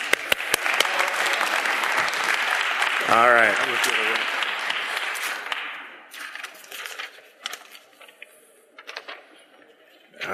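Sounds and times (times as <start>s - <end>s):
audience applause: 0.0s - 6.0s
speech: 3.1s - 4.4s.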